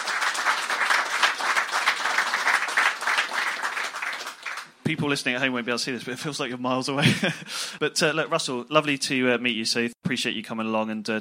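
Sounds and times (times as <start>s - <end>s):
crowd applauding: 0.0s - 4.7s
speech: 4.9s - 11.2s.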